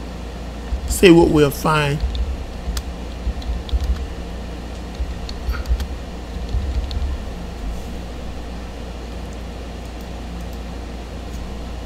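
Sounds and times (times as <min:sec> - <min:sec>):
steady low rumble: 0:00.0 - 0:11.8
typing on a computer keyboard: 0:00.7 - 0:07.3
speech: 0:00.9 - 0:02.1.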